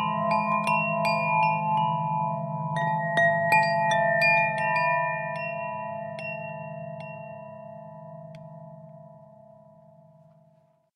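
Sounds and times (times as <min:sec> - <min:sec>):
glockenspiel: 0:00.0 - 0:10.9.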